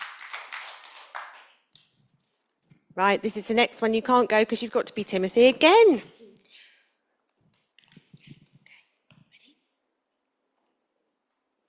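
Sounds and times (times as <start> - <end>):
small group clapping for a child: 0.0 - 2.0
speech: 3.0 - 6.2.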